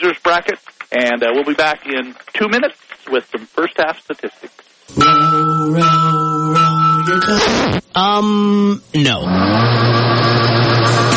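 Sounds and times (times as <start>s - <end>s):
speech: 0.0s - 11.1s
boat outboard motor revving: 9.2s - 11.1s.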